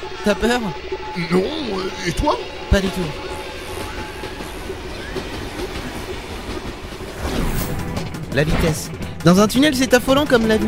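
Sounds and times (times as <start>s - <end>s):
speech: 0.0s - 3.3s, 8.4s - 10.6s
mine cart rolling on rusty rails: 2.8s - 7.3s.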